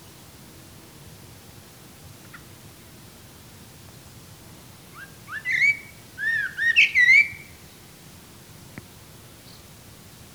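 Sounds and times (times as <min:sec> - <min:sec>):
Eurasian blackbird song phrase: 0:05.3 - 0:07.5.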